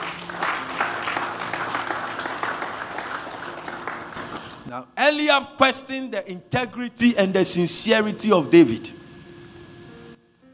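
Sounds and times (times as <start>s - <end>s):
audience clapping: 0.0s - 4.7s
speech: 4.7s - 9.0s.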